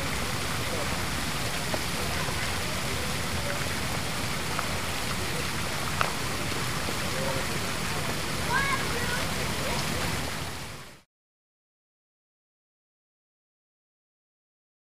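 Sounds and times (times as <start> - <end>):
park fountain water rushing with splashes and gurgles: 0.0 - 11.1
sparse adult murmur of voices: 1.6 - 10.2
children playing and running by: 1.7 - 10.0.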